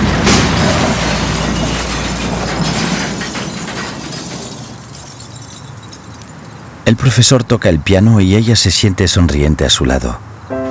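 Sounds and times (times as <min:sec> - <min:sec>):
car crashing into trailer and rolling over: 0:00.0 - 0:06.2
speech: 0:07.0 - 0:10.3.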